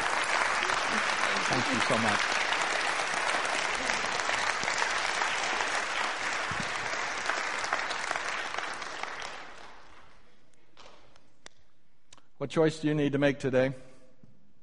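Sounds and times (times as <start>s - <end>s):
audience applause: 0.0s - 10.3s
speech: 1.5s - 2.4s, 12.4s - 13.9s.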